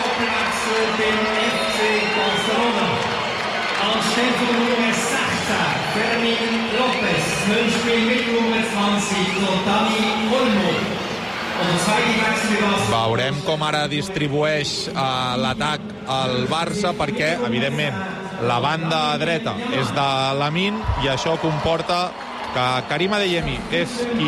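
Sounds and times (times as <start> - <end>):
stadium crowd ovation for substitute player: 0.0 - 15.4, 16.6 - 24.2
speech: 0.8 - 2.7, 3.8 - 11.0, 11.6 - 24.2.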